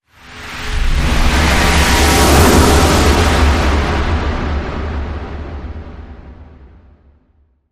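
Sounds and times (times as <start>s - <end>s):
technological transition sound: 0.2s - 5.2s.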